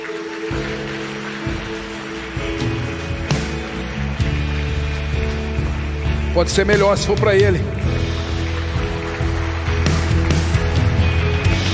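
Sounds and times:
audience applause: 0.0s - 11.7s
speech: 6.4s - 8.0s.

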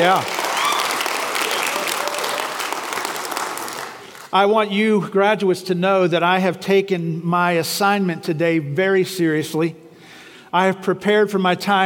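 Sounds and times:
speech: 0.0s - 0.3s, 4.3s - 9.8s, 10.5s - 11.8s
graduates clapping and applauding: 0.0s - 4.4s.

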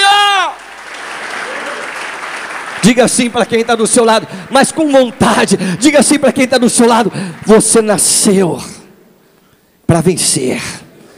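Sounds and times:
crowd applause: 0.5s - 8.2s
speech: 2.8s - 8.7s, 9.9s - 10.8s.

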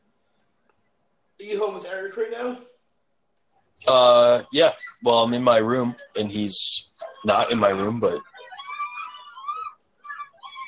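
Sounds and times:
speech: 1.4s - 2.7s, 3.8s - 8.3s
faint screaming outside through open window: 6.5s - 10.6s.

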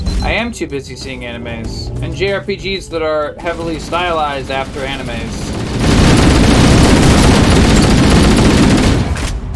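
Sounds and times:
speech: 0.2s - 5.4s
automatic gunfire from a video game firefight along a hallway: 3.5s - 9.4s.

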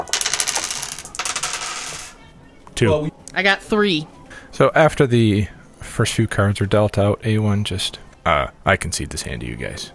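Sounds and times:
green dice rolled for a tabletop sabacc game: 0.0s - 2.2s
speech: 2.8s - 9.9s.

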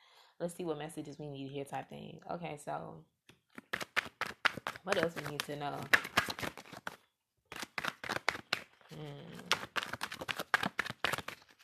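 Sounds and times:
speech: 0.4s - 3.2s, 4.8s - 6.1s, 9.0s - 9.6s
tarot cards shuffled by hand: 3.4s - 11.6s.

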